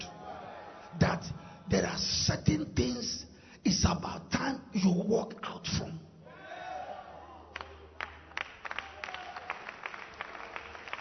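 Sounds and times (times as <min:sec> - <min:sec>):
speech: 0:00.9 - 0:06.1
scattered audience claps: 0:07.5 - 0:11.0.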